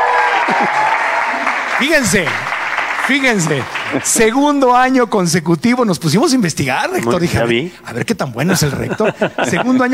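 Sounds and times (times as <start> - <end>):
audience applause: 0.0 - 5.0
laughter: 0.3 - 1.0, 8.4 - 9.9
speech: 0.5 - 0.9, 1.8 - 2.5, 3.1 - 9.9.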